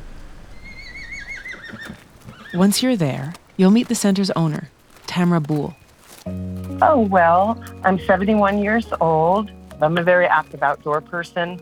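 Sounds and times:
horse neighing: 0.0s - 3.3s
speech: 2.5s - 11.6s.

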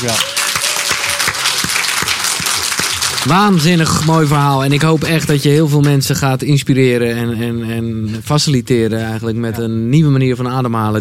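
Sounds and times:
speech: 0.0s - 0.3s, 3.2s - 11.0s
audience applause: 0.0s - 5.7s.

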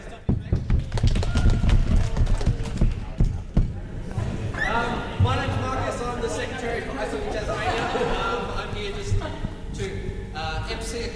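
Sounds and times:
crowd stomping feet: 0.0s - 4.2s
murmur of voices: 0.0s - 11.1s
crowd clapping: 0.5s - 3.4s
laughter: 6.7s - 9.7s.

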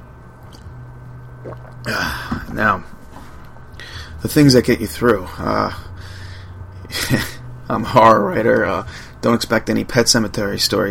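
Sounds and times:
steady low hum: 0.0s - 10.8s
person slurping a sip of hot coffee: 0.5s - 2.4s
speech: 1.4s - 3.0s, 4.2s - 5.9s, 6.9s - 10.8s.

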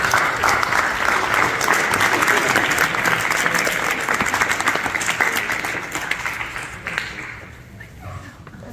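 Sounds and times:
audience applause from a large crowd: 0.0s - 7.7s.

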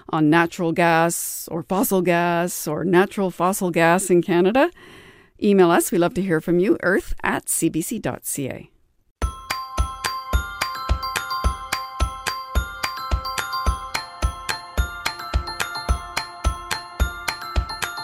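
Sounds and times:
speech: 0.1s - 8.7s
wedding bells ringing: 9.2s - 18.0s.

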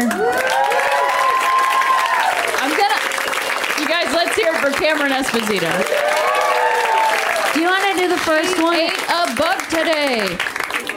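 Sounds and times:
audience cheering: 0.0s - 4.7s, 5.4s - 9.0s
audience applause: 0.0s - 10.9s
speech: 4.8s - 6.3s, 7.6s - 10.5s.

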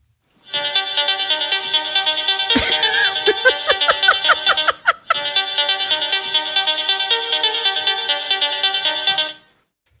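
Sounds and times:
techno style phone ringtone: 0.9s - 9.1s
laughter: 2.6s - 5.2s.

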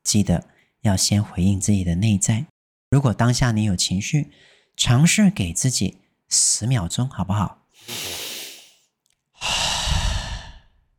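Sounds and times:
speech: 0.1s - 8.2s
deep breathing: 7.8s - 8.8s, 9.4s - 10.8s.

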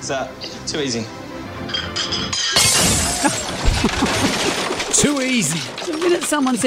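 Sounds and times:
speech: 0.0s - 6.6s
favourite special china teacup shattering: 1.7s - 6.6s.

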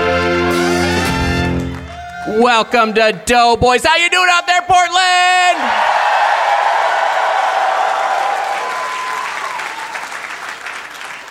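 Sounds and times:
live crowd clapping and cheering with whoops: 0.5s - 3.4s, 5.6s - 11.2s
speech: 2.4s - 6.0s.

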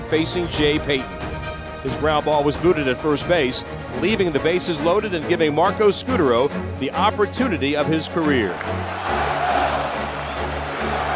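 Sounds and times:
speech: 0.1s - 9.4s
stadium crowd chanting a player's name: 8.8s - 11.1s.

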